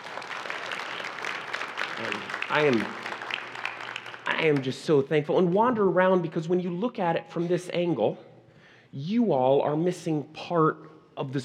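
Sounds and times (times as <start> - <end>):
audience clapping: 0.0 - 5.0
speech: 2.0 - 3.0, 4.4 - 8.3, 8.9 - 11.4.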